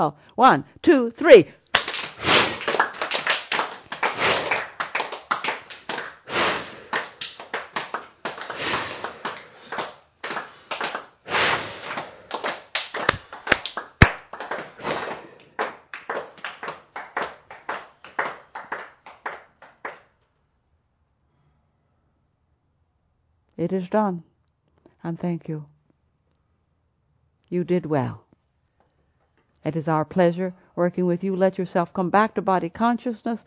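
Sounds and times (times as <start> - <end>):
speech: 0.0 - 1.6, 23.7 - 24.3, 25.0 - 25.7, 27.5 - 28.2, 29.6 - 33.4
hand clapping: 1.7 - 20.1
breathy sniffs and exhales: 6.3 - 6.9, 11.3 - 12.3.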